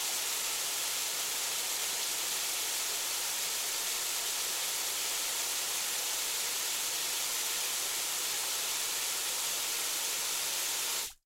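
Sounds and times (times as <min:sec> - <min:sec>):
water hose spraying on cone setting: 0:00.0 - 0:11.2.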